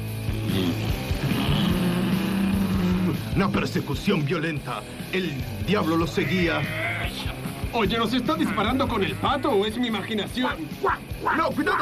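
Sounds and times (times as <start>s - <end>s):
motorcycle engine revving and pulling away: 0.0s - 3.5s
speech: 3.4s - 11.8s.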